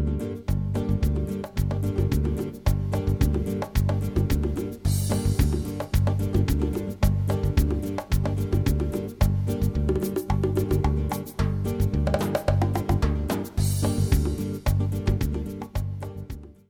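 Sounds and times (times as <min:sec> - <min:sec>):
samba music: 0:00.1 - 0:16.6.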